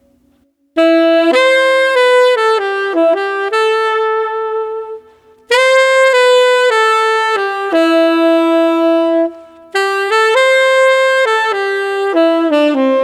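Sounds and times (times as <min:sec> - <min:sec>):
tenor saxophone mellow melody: 0:00.8 - 0:13.0.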